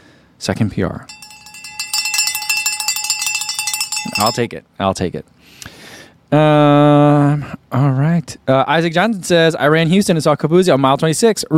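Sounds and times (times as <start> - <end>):
speech: 0.4 - 1.2, 4.1 - 5.7, 6.3 - 11.5
bell being rung: 1.1 - 4.4.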